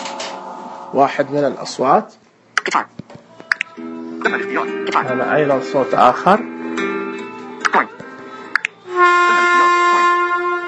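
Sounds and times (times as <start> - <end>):
speech: 0.9 - 3.0, 4.2 - 6.5, 7.7 - 8.0
vehicle horn blaring: 8.9 - 10.6.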